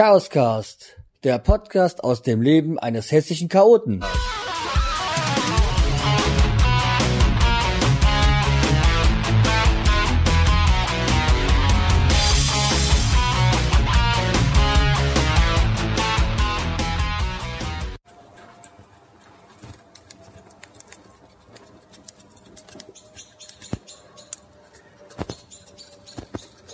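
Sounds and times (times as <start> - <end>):
speech: 0.0 - 4.8
loud music: 4.0 - 18.0
faint bird chirps: 22.7 - 26.7.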